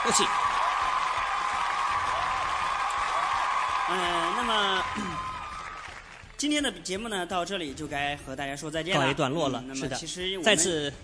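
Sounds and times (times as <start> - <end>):
audience applause: 0.0 - 6.6
speech: 0.1 - 0.6, 3.9 - 5.1, 6.4 - 11.0.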